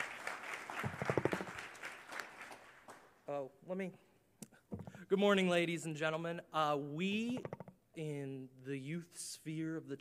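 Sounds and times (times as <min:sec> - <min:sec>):
audience round of applause: 0:00.0 - 0:03.2
speech: 0:03.3 - 0:04.1, 0:05.1 - 0:10.0.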